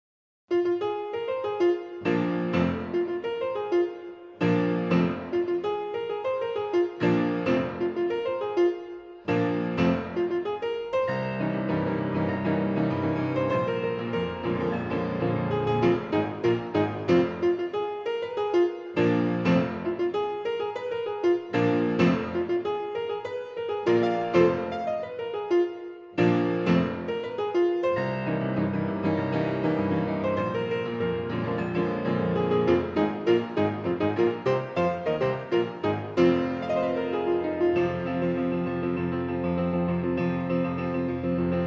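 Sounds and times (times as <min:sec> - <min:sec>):
grand piano: 0:00.5 - 0:41.6.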